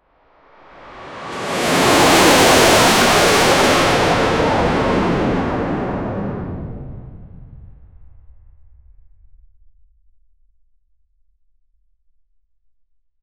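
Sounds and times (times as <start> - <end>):
fast drones: 0.8 - 6.4.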